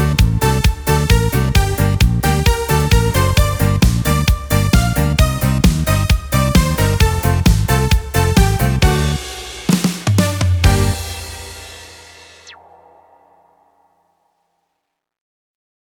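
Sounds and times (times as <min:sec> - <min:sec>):
Yamaha keyboard accompaniment style: 0:00.0 - 0:11.8.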